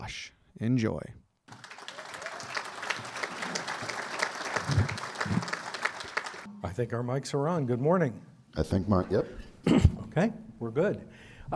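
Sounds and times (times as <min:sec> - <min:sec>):
speech: 0:00.1 - 0:01.2, 0:06.6 - 0:11.5
audience applause: 0:01.5 - 0:06.5.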